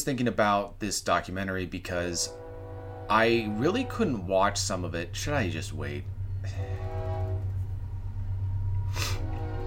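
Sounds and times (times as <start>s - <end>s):
speech: 0.0s - 2.5s, 3.1s - 6.9s
train passing by: 1.4s - 9.6s.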